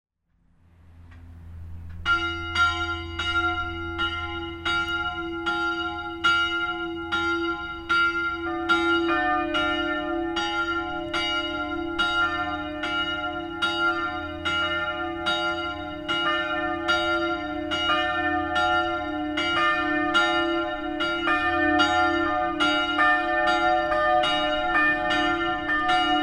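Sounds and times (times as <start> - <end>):
simulated bells ringing: 2.0 - 26.2.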